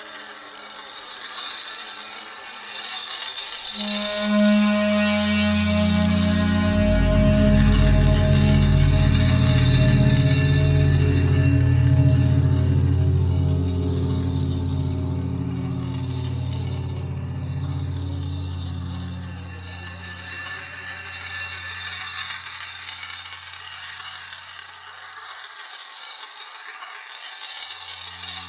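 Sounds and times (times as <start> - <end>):
abstract clarinet: 3.7 - 22.7, 28.0 - 28.4.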